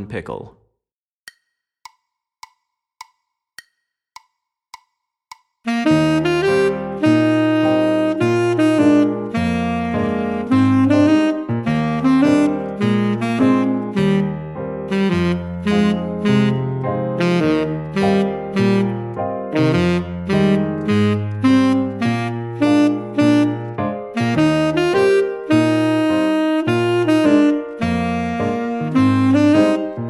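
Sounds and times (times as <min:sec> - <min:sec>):
tenor saxophone etude: 0:05.7 - 0:16.6, 0:17.2 - 0:18.9, 0:19.6 - 0:30.0.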